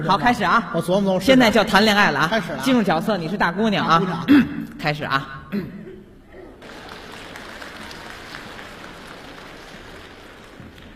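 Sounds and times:
speech: 0.0 - 5.8
audience applause: 6.6 - 10.9.

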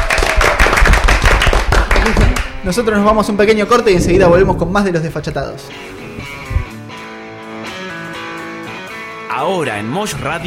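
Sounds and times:
applause: 0.0 - 2.5
speech: 2.6 - 6.0, 9.4 - 10.4.

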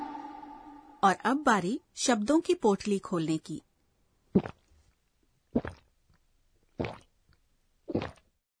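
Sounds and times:
speech: 1.0 - 3.7, 4.4 - 4.6
person gulping down a drink: 4.3 - 4.8, 5.5 - 5.9, 6.7 - 7.1, 7.9 - 8.4.

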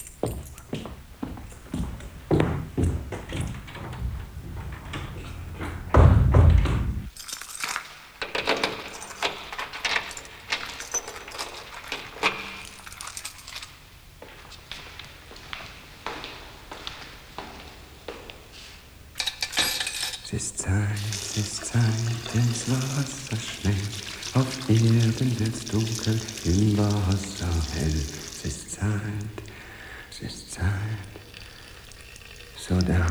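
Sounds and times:
keys jingling and clinking as they are handled: 0.0 - 15.2, 18.8 - 33.1
dull low thump: 1.9 - 7.1.

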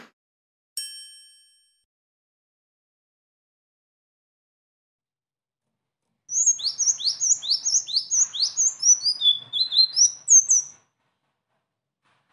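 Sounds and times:
sunbird singing a high-pitched twittering song: 6.3 - 10.7.

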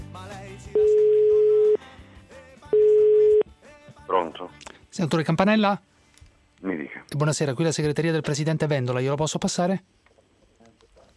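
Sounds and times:
telephone ringing tone of an outgoing call: 0.8 - 1.8, 2.7 - 3.4
speech: 5.0 - 5.9, 7.2 - 10.0.

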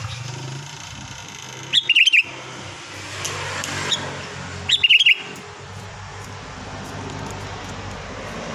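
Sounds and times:
sooty-headed bulbul whistling: 1.7 - 2.4, 4.7 - 5.3.

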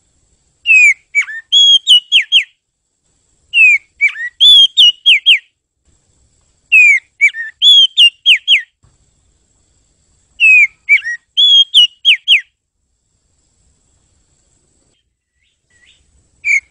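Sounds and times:
bird whistling: 0.7 - 2.6, 3.5 - 5.5, 6.7 - 8.7, 10.4 - 12.5, 15.3 - 16.6.

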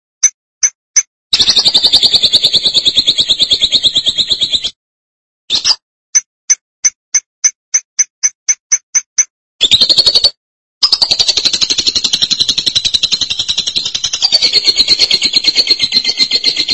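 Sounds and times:
lovebird chirping: 1.4 - 4.8, 9.6 - 16.7.

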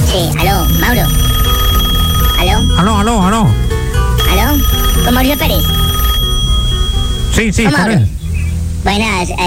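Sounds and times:
speech: 0.1 - 1.3, 2.8 - 3.7, 4.3 - 5.8, 7.3 - 8.2, 8.8 - 9.4
electronic ring tone of an outgoing phone call: 0.4 - 7.8.

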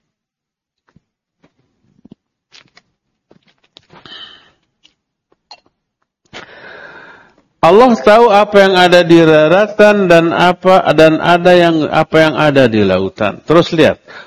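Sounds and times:
person sniffing: 3.9 - 4.6, 6.3 - 7.4
person coughing: 4.0 - 4.6
speech: 7.6 - 14.2.

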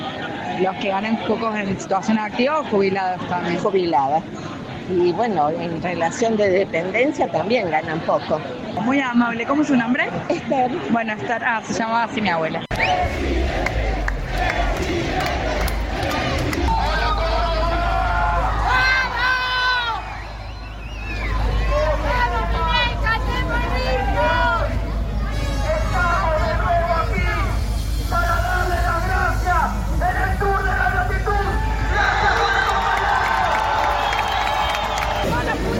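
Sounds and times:
crowd shouting and cheering: 0.0 - 3.5, 11.1 - 35.7
speech: 0.6 - 13.6.

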